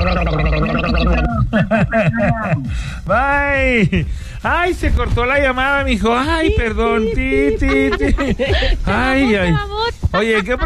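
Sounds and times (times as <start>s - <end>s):
person gargling water: 0.0s - 2.6s
laughter: 0.7s - 2.8s, 6.8s - 10.6s
speech: 2.0s - 10.6s.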